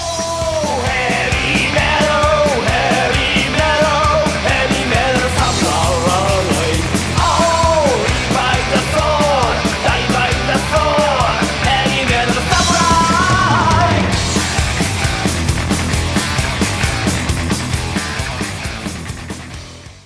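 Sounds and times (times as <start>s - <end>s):
heavy metal music: 0.0s - 20.0s.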